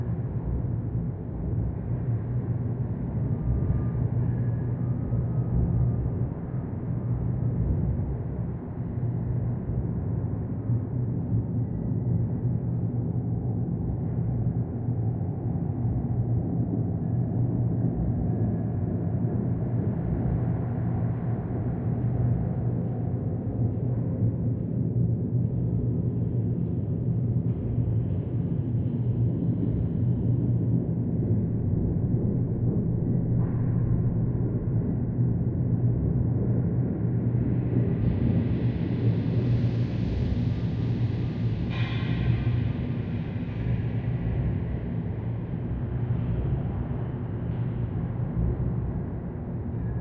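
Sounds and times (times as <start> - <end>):
ambience: 0.0 - 50.0.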